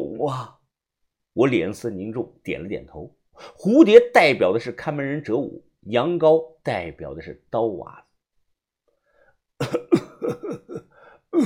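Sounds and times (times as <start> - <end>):
speech: 0.2 - 0.6, 1.4 - 8.0, 9.6 - 10.6
person coughing: 9.6 - 11.4.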